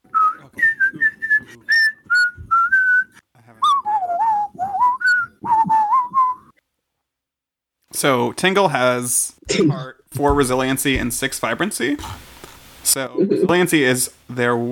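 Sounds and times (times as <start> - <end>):
person whistling a TV theme tune: 0.1 - 6.5
speech: 8.0 - 14.7.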